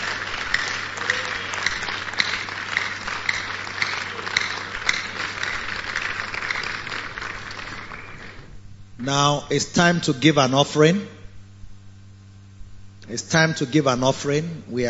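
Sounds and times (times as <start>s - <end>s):
audience clapping: 0.0s - 8.5s
speech: 9.0s - 11.2s, 13.1s - 14.8s.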